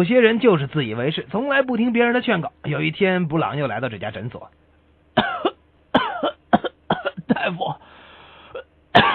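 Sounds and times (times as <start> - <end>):
speech: 0.0 - 4.6
person coughing: 5.2 - 7.8, 8.5 - 9.1.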